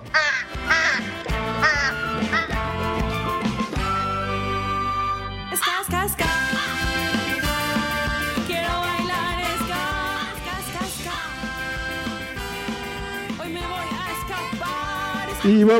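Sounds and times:
ducks quacking: 0.0s - 2.7s
small horns tooting: 0.0s - 15.5s
speech: 15.4s - 15.7s.

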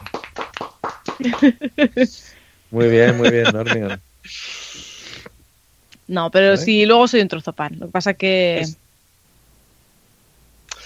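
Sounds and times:
applause: 0.0s - 1.7s
laughter: 1.2s - 2.2s, 2.8s - 4.0s
speech: 1.2s - 4.6s, 6.1s - 8.8s.

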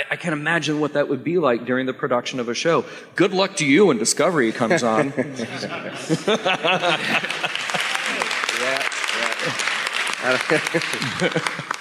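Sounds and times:
speech: 0.1s - 7.4s, 10.2s - 11.8s
laughter: 4.4s - 11.8s
audience clapping: 6.5s - 11.8s.

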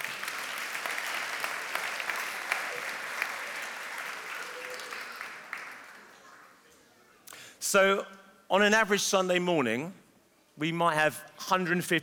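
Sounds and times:
ripple of applause: 0.0s - 6.2s
speech: 7.7s - 10.0s, 10.6s - 12.0s.

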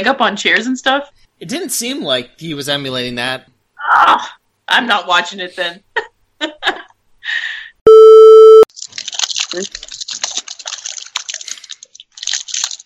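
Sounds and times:
speech: 0.0s - 7.4s, 9.5s - 9.9s
unwrapping hard candy from wax paper: 8.7s - 12.8s.

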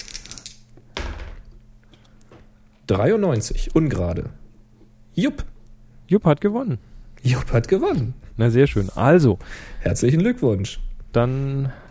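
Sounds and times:
dice rolling across a desk: 0.0s - 1.4s
speech: 2.9s - 4.4s, 5.2s - 5.5s, 6.1s - 11.8s.

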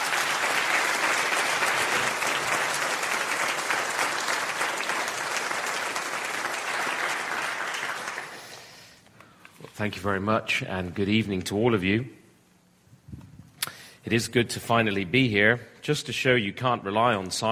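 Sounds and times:
audience applause: 0.0s - 8.8s
speech: 9.8s - 12.2s, 14.1s - 17.5s.

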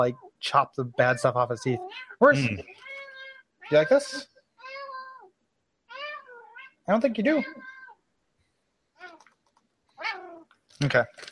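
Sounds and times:
speech: 0.0s - 2.9s, 3.7s - 4.3s, 6.9s - 7.7s, 10.8s - 11.3s
cat meowing: 0.9s - 5.3s, 5.9s - 8.0s, 10.0s - 10.4s.

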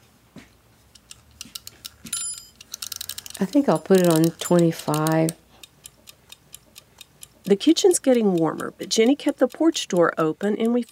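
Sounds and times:
mechanical kitchen timer ticking and clicking: 1.0s - 10.9s
short high metallic ring of kitchen timer: 2.1s - 2.7s
speech: 3.4s - 5.4s, 7.5s - 10.9s.

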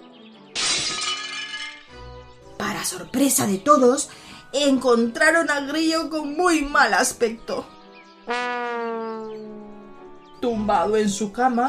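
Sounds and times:
window glass being broken: 0.5s - 2.1s
speech: 2.6s - 8.7s, 10.4s - 11.6s.

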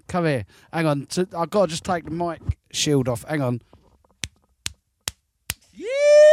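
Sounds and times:
speech: 0.1s - 3.8s
hand slap: 4.7s - 5.7s.

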